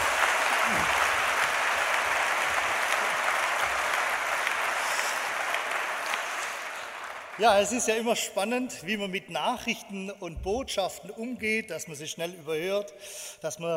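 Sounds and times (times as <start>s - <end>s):
audience clapping: 0.0s - 8.6s
speech: 7.4s - 13.7s.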